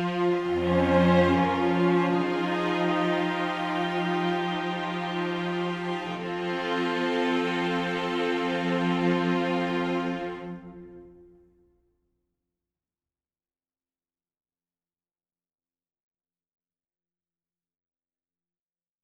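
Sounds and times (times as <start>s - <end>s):
strings: 0.0s - 11.4s.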